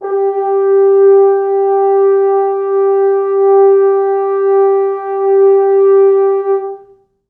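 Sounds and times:
four French horns sustaining G3: 0.0s - 7.0s.

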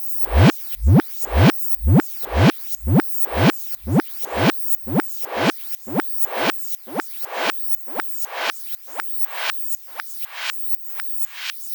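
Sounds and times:
eclectic electronica drum beat: 0.2s - 8.0s.

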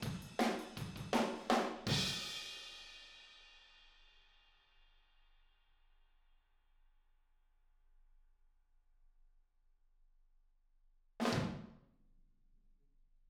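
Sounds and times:
drums: 0.0s - 4.1s, 11.2s - 11.7s.

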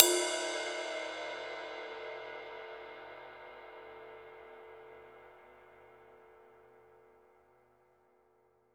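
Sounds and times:
dry ride cymbal: 0.0s - 5.1s.

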